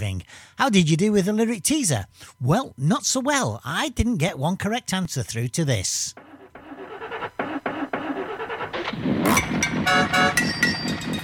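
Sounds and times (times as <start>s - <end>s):
speech: 0.0s - 6.3s
old car engine struggling to start: 6.2s - 11.2s.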